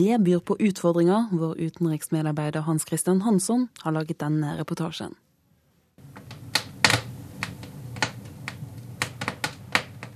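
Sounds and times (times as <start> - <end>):
speech: 0.0 - 5.2
steady low rumble of flames: 6.0 - 10.1
wood crackling and popping in a fireplace: 6.0 - 10.1.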